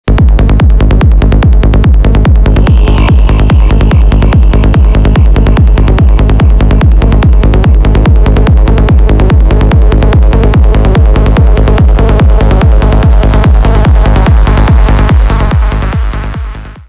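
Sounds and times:
dance music: 0.1 - 16.8.

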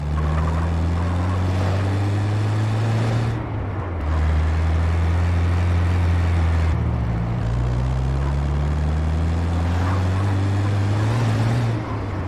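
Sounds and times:
van engine: 0.0 - 12.2.

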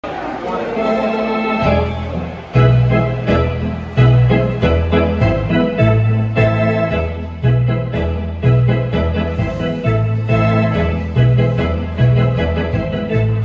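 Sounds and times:
folk tune on the organ: 0.1 - 13.4.

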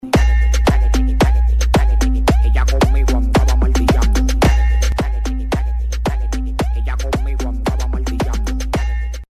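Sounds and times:
bass: 0.0 - 9.3.

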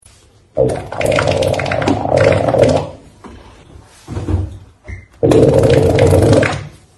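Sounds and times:
squeezed fart: 0.6 - 3.0, 5.2 - 6.8.

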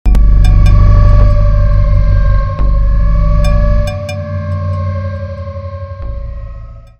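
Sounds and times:
horror sound effect: 0.0 - 6.9.

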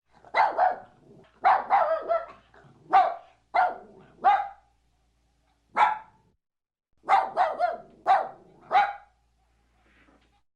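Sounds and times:
dog barking: 0.2 - 4.7, 5.7 - 6.2, 7.0 - 9.2.

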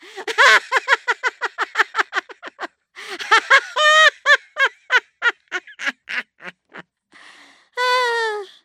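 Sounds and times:
grandmother laughing: 0.0 - 6.8.

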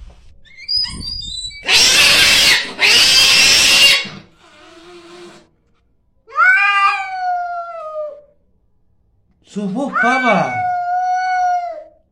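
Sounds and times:
angry cat: 0.6 - 5.5, 6.3 - 8.4, 9.8 - 12.0.

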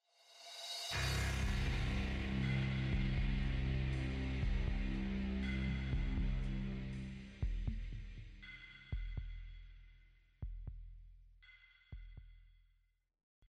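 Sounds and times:
death music: 0.8 - 8.7.

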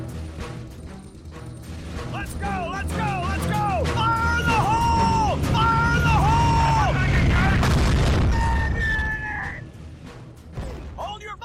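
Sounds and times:
fire: 0.1 - 11.0.

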